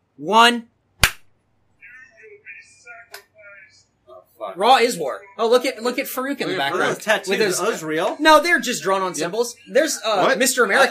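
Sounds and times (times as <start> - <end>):
speech: 0.2 - 0.7, 4.4 - 10.9
crisp snap: 1.0 - 1.3
hand clap: 1.0 - 1.3.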